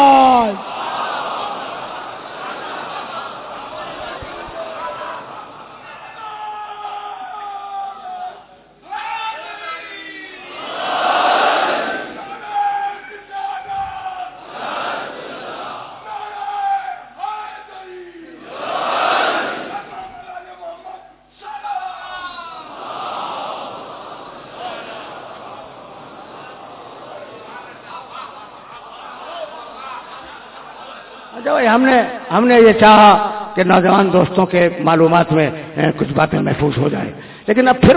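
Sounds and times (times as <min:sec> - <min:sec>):
leading voice calling out: 0:00.0 - 0:00.6
laughter: 0:00.0 - 0:06.5, 0:22.5 - 0:32.3
crowd shouting a slogan response at a religious gathering: 0:00.0 - 0:28.2
speech: 0:31.7 - 0:37.9.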